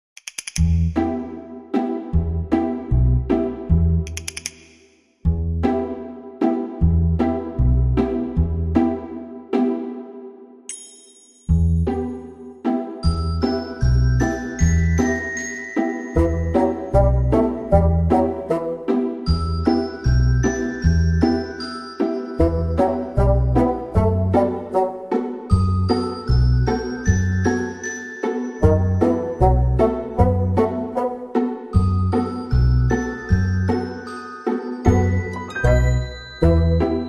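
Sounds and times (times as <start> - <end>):
reduced percussion: 0.0 - 1.2, 3.3 - 5.4, 10.7 - 12.2, 13.0 - 18.6, 19.2 - 31.1, 31.7 - 37.0
reduced pizzicato strings: 0.8 - 4.1, 5.3 - 10.4, 11.7 - 37.0.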